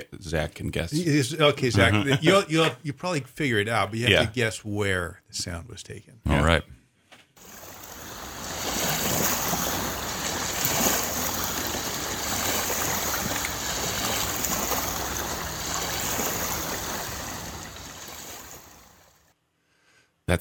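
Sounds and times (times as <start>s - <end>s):
speech: 0.0s - 6.8s
laughter: 1.0s - 3.0s, 4.0s - 4.4s
waves on Lake Ponderay at Sandpoint: 7.4s - 19.3s.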